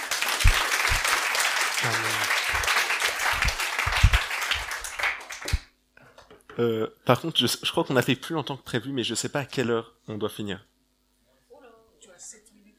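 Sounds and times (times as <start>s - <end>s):
audience applause: 0.0s - 5.6s
speech: 1.8s - 2.2s, 6.6s - 10.7s.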